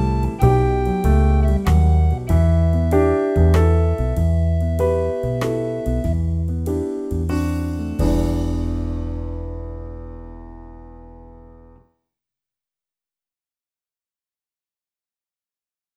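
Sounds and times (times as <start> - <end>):
recorder melody: 0.0 - 11.7.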